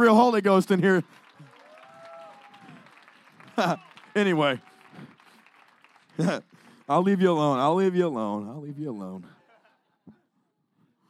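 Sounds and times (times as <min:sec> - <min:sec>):
speech: 0:00.0 - 0:01.2, 0:03.6 - 0:05.1, 0:06.2 - 0:09.4
audience clapping: 0:00.0 - 0:07.9
laughter: 0:03.4 - 0:04.5, 0:06.2 - 0:06.5, 0:09.2 - 0:10.3.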